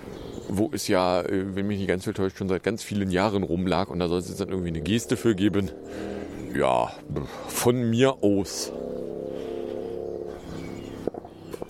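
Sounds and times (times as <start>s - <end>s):
speech: 0.5s - 9.0s
car driving by on a road: 5.0s - 11.6s.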